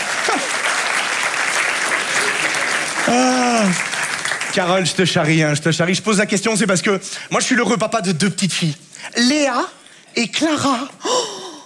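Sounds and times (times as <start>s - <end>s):
audience applause: 0.0s - 5.5s
speech: 3.1s - 3.9s, 4.5s - 11.2s.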